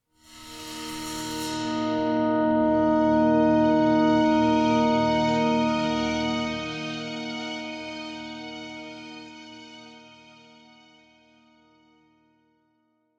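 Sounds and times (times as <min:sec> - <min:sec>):
cockpit music stinger: 0:00.3 - 0:10.0.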